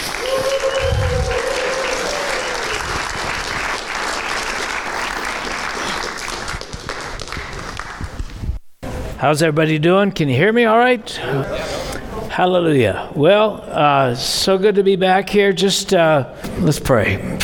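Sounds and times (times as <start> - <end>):
congregation applause welcoming a pastor: 0.0 - 8.2
speech: 9.2 - 11.7, 12.4 - 17.4.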